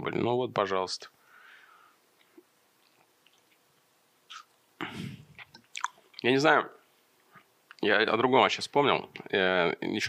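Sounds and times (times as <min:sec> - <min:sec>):
speech: 0:00.0 - 0:01.2, 0:06.2 - 0:06.8, 0:07.8 - 0:10.0
person biting and chewing watermelon: 0:02.2 - 0:04.5, 0:05.4 - 0:06.2.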